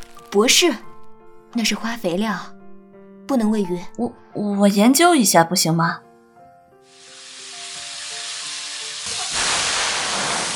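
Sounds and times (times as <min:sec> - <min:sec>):
speech: 0:00.3 - 0:00.9, 0:01.5 - 0:02.6, 0:03.3 - 0:06.1
hot oil sizzling and splattering in pan: 0:06.9 - 0:10.5.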